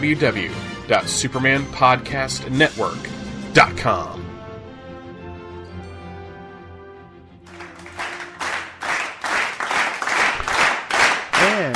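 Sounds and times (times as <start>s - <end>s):
speech: 0.0s - 4.3s
crowd cheering: 7.5s - 11.7s.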